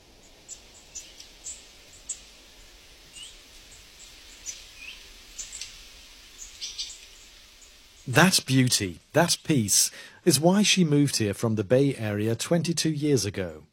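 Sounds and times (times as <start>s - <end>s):
chorus of various birds singing: 0.2s - 5.8s, 6.4s - 8.2s
speech: 8.1s - 13.7s.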